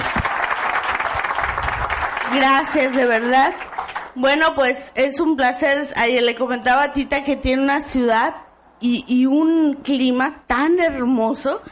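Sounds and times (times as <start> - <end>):
audience applause: 0.0 - 3.0, 3.6 - 4.1
speech: 2.3 - 11.7.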